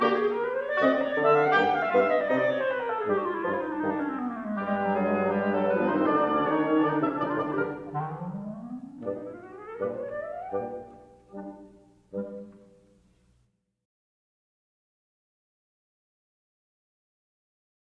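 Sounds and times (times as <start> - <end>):
wind quintet: 0.0 - 12.8.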